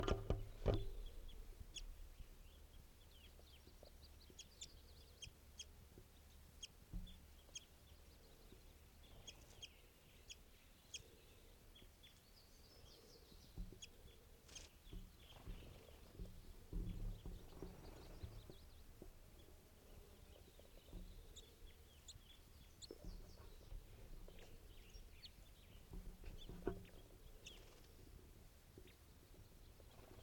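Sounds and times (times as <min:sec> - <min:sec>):
wild birds clucking and chirping: 0:00.0 - 0:30.2.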